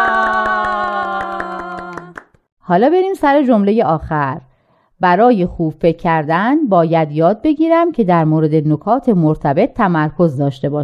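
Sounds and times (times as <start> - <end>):
people cheering: 0.0 - 2.2
hand claps: 0.0 - 2.5
speech: 2.7 - 10.8.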